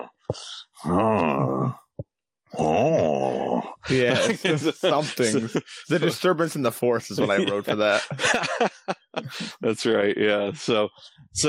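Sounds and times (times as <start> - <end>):
speech: 0.3 - 1.8, 3.9 - 11.4
person imitating a man grunting: 0.8 - 1.9, 2.5 - 4.1
laughter: 3.8 - 6.4, 7.1 - 9.6.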